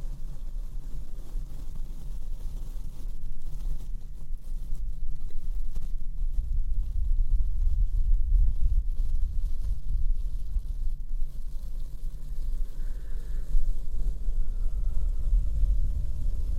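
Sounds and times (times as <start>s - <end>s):
faint scratchy ticks: 0.0s - 16.5s
slow brushing and blowing across a microphone: 0.0s - 16.5s.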